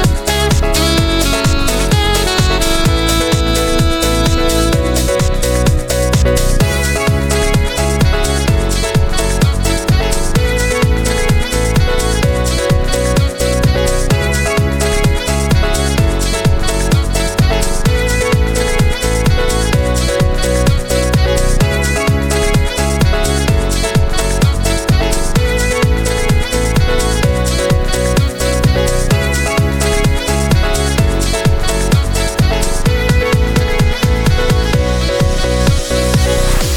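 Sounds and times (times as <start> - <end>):
instrumental saxophone music: 0.0 - 36.7.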